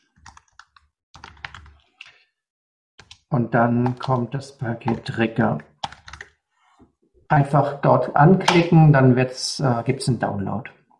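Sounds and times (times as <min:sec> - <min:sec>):
typing on a computer keyboard: 0:00.1 - 0:02.2, 0:03.0 - 0:04.2, 0:05.8 - 0:06.4
speech: 0:03.3 - 0:05.7, 0:07.3 - 0:10.8.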